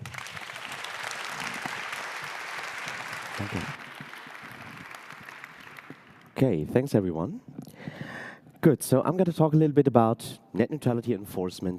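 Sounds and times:
audience applause: 0.0s - 6.4s
speech: 3.4s - 3.8s, 6.4s - 7.5s, 8.6s - 11.7s.

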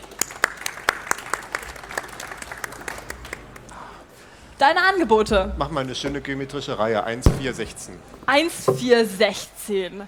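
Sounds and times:
audience applause: 0.0s - 4.0s
speech: 4.6s - 10.0s.

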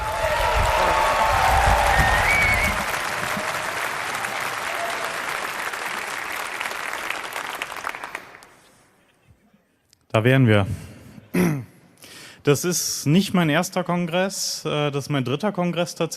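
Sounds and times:
audience applause welcoming a speaker at a congress in Leipzig: 0.0s - 8.6s
speech: 10.2s - 11.6s, 12.4s - 16.1s.

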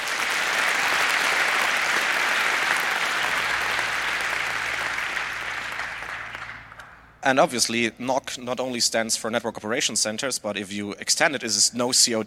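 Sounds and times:
audience applause: 0.0s - 7.1s
speech: 7.2s - 12.2s.

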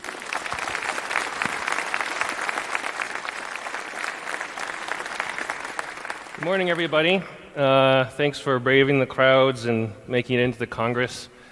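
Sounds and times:
audience applause: 0.0s - 7.2s
speech: 6.4s - 11.3s.

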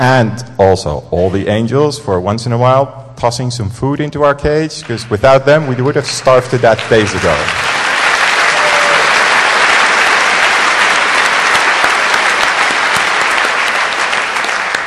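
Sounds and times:
speech: 0.0s - 7.7s
audience applause: 4.8s - 14.8s.

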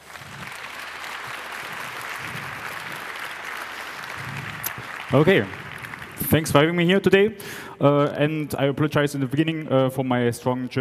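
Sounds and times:
crowd applause: 0.0s - 7.7s
speech: 5.1s - 5.6s, 6.3s - 10.7s.

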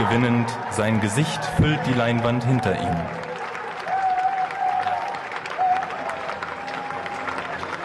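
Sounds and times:
speech: 0.0s - 3.2s
audience standing and applauding: 0.0s - 7.8s
whistles or cheers: 2.9s - 7.8s.

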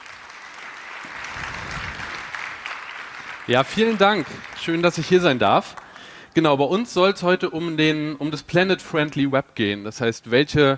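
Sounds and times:
audience applause: 0.0s - 6.6s
speech: 3.5s - 5.8s, 6.4s - 10.7s.

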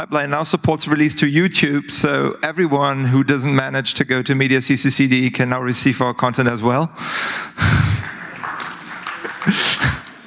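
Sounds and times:
speech: 0.0s - 8.0s, 9.4s - 10.0s
brief audience applause: 7.6s - 10.2s.

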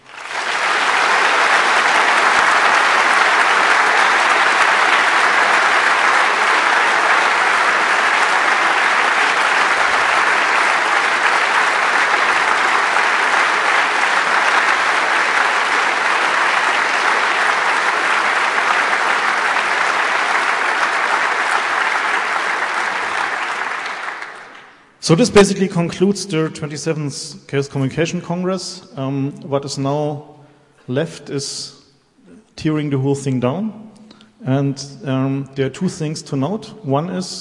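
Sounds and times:
audience applause: 0.0s - 25.0s
speech: 25.1s - 31.8s, 32.6s - 33.8s, 34.4s - 37.3s.

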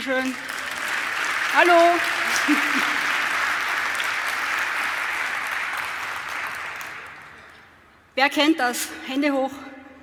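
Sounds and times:
speech: 0.0s - 0.6s, 1.6s - 3.1s, 8.2s - 9.7s
audience applause: 0.0s - 7.5s.

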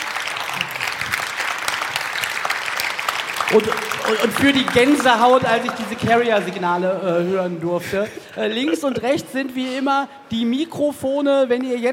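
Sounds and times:
audience applause: 0.0s - 6.8s
speech: 3.5s - 11.9s.

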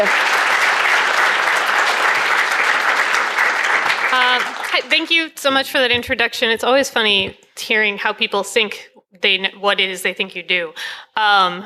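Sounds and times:
speech: 0.0s - 0.2s, 4.4s - 11.6s
audience applause: 0.0s - 5.2s.

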